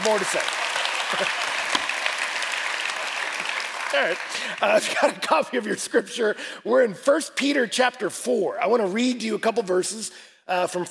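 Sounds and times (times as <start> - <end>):
speech: 0.0 - 1.5, 3.9 - 10.8
audience applause: 0.0 - 4.7.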